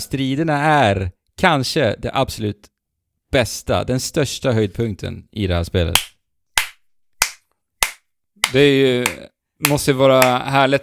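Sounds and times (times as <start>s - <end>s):
speech: 0.0s - 2.7s, 3.3s - 6.1s, 8.5s - 10.8s
one person clapping hands: 6.0s - 10.8s.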